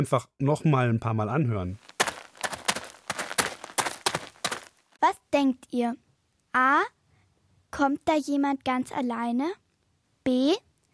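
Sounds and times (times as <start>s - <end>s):
speech: 0.0s - 1.9s, 5.0s - 6.0s, 6.6s - 7.0s, 7.7s - 9.6s, 10.3s - 10.7s
footsteps of people walking across a cemetery: 1.8s - 5.0s.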